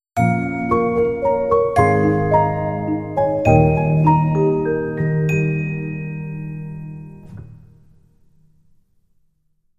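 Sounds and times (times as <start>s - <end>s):
song: 0.2s - 7.5s.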